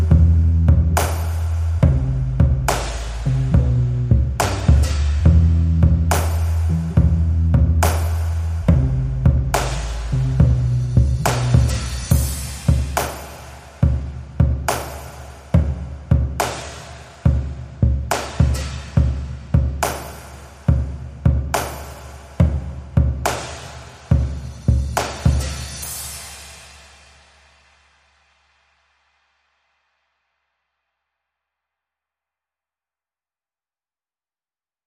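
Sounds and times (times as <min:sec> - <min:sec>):
bass: 0:00.0 - 0:20.1, 0:24.1 - 0:26.6
drums: 0:00.0 - 0:29.2.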